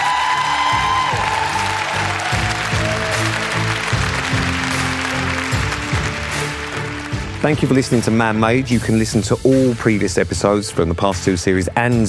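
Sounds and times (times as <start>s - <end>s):
audience applause: 0.0s - 8.4s
speech: 7.4s - 12.0s.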